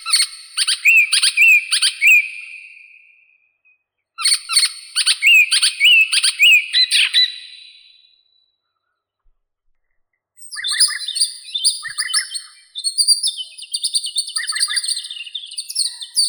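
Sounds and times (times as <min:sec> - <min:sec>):
European robin Erithacus rubecula: 0:00.0 - 0:03.0, 0:04.2 - 0:08.1, 0:10.4 - 0:16.2.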